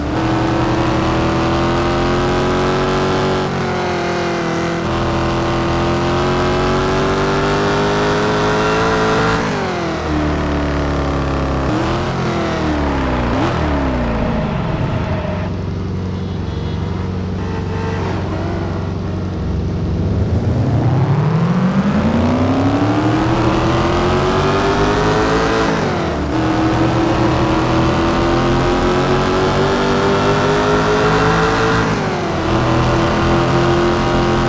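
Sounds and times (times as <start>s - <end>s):
2019 Audi R8 V10 engine: 0.0s - 34.4s.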